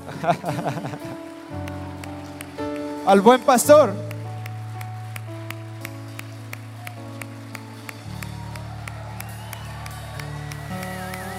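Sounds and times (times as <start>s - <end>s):
laughter: 0.0s - 1.5s
applause: 0.0s - 11.3s
speech: 0.2s - 2.1s, 3.1s - 4.0s.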